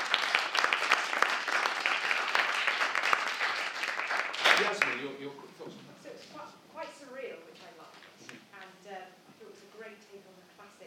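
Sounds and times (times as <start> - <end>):
audience applause: 0.0 - 5.1.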